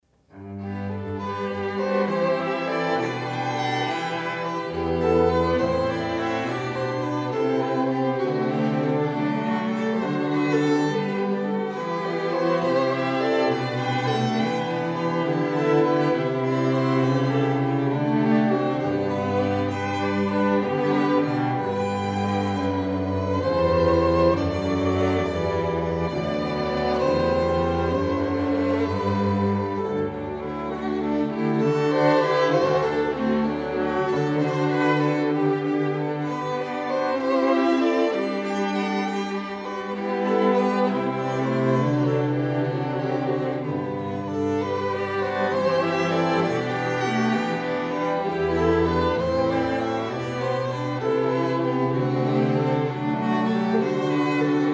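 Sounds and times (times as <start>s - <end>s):
strings: 0.0s - 54.7s.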